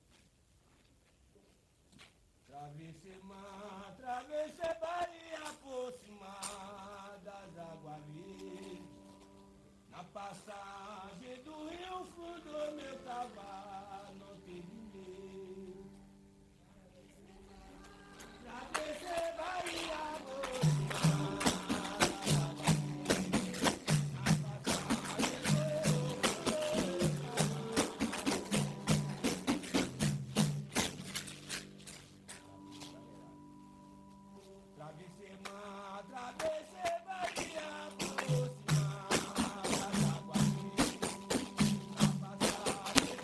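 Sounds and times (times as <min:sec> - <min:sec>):
baiao music: 0:03.6 - 0:43.2.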